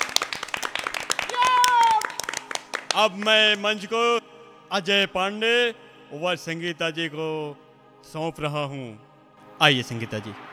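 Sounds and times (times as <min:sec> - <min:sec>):
audience clapping to welcome performers onto a stage: 0:00.0 - 0:03.9
speech: 0:03.0 - 0:10.5.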